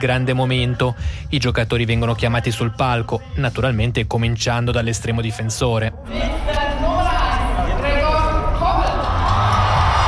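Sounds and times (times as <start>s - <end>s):
speech: 0.0s - 6.6s
crowd applauding and cheering players on stage: 7.4s - 10.0s.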